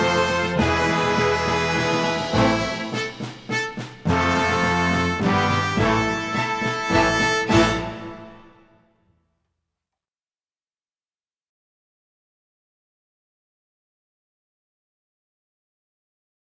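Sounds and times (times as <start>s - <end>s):
fast march tune: 0.0s - 8.8s.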